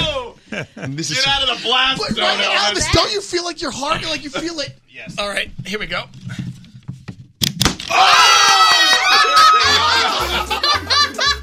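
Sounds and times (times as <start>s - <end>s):
speech: 0.6s - 6.2s
balloon popping: 7.2s - 8.0s
several people laughing and shrieking: 7.9s - 11.4s.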